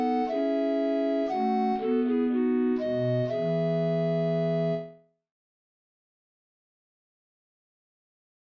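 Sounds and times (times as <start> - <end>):
minuet transcribed for grand organ: 0.0 - 5.0.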